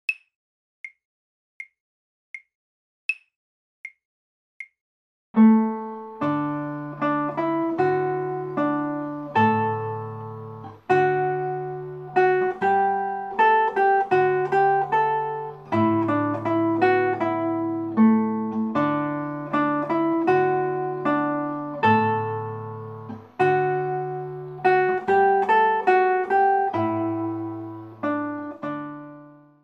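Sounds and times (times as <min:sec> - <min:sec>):
prelude music: 0:05.4 - 0:29.6.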